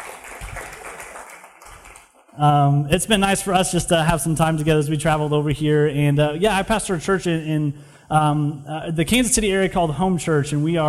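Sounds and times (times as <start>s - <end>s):
audience applause: 0.0s - 2.4s
speech: 2.4s - 10.8s.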